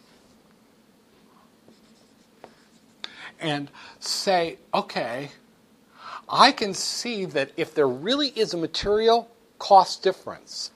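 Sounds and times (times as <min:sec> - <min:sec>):
pen scratching on paper drawing a marginal revenue curve by hand: 0:01.7 - 0:03.0
speech: 0:03.4 - 0:05.4, 0:06.3 - 0:10.7.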